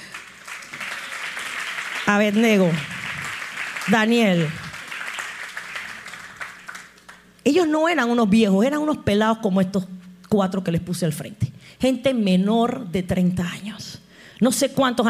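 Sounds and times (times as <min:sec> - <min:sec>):
audience applause: 0:00.0 - 0:07.3
speech: 0:02.1 - 0:02.9, 0:03.9 - 0:04.6, 0:07.4 - 0:15.0.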